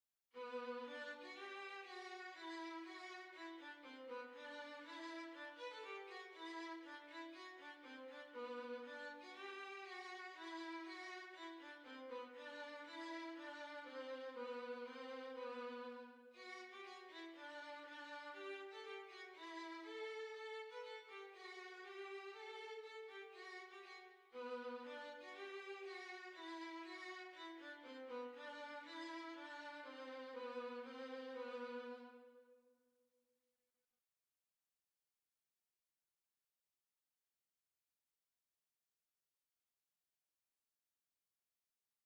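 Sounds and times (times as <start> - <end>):
violin: 0.4 - 32.6.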